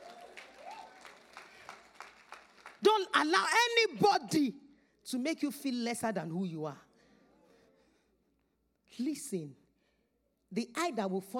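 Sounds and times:
audience clapping: 0:00.0 - 0:03.1
speech: 0:02.8 - 0:06.8, 0:09.0 - 0:09.6, 0:10.5 - 0:11.3.

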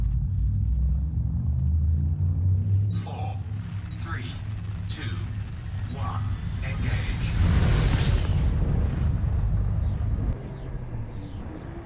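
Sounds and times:
video game spaceship frameshift drive charging rumble: 0:00.0 - 0:11.8
faint thin high whine: 0:02.6 - 0:09.2.

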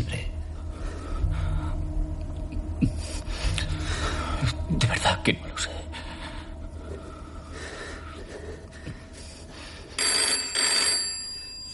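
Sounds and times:
steady low hum: 0:00.0 - 0:11.7
speech: 0:04.4 - 0:06.0
telephone ringing: 0:10.0 - 0:11.7.

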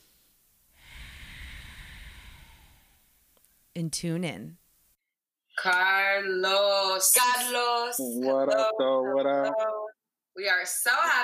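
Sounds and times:
slow deep breath drawn in during a guided breathing moment: 0:00.7 - 0:03.2
speech: 0:03.8 - 0:04.6, 0:05.6 - 0:09.8, 0:10.4 - 0:11.2.

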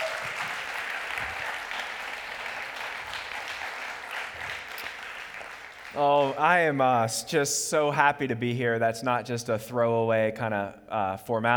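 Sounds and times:
audience applause: 0:00.0 - 0:06.8
speech: 0:06.0 - 0:11.5.

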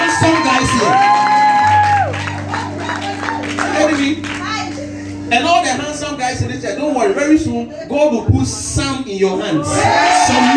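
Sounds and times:
audience clapping and cheering: 0:00.0 - 0:05.1, 0:09.6 - 0:10.5
steady hum of music: 0:00.0 - 0:10.5
speech: 0:06.9 - 0:10.5.

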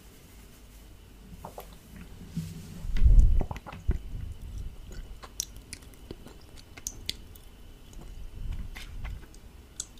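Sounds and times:
close chewing and biting mouth sounds: 0:03.4 - 0:09.9.

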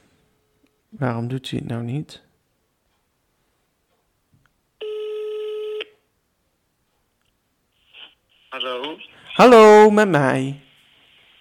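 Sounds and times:
speech: 0:01.0 - 0:02.3, 0:09.0 - 0:10.6
telephone call ringing tone: 0:04.8 - 0:05.9.

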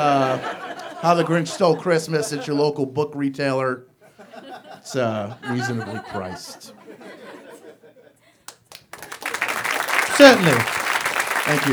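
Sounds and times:
speech: 0:00.0 - 0:03.9, 0:04.8 - 0:06.8, 0:10.2 - 0:10.8, 0:11.5 - 0:11.7
laughter: 0:00.0 - 0:11.7
audience applause: 0:08.5 - 0:11.7.

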